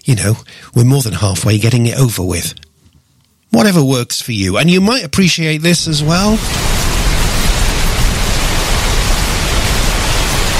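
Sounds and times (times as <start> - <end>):
speech: 0.0 - 2.6, 3.5 - 7.2
rain falling: 5.8 - 10.5.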